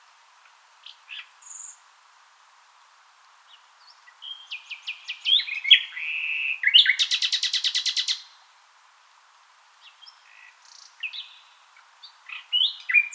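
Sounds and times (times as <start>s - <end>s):
common nightingale song: 4.2s - 8.2s, 12.3s - 13.1s.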